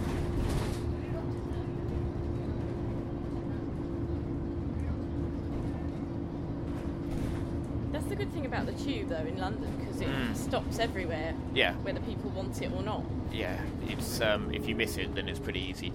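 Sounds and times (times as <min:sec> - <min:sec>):
moving bus engine rumble: 0:00.0 - 0:15.9
speech: 0:08.1 - 0:15.9.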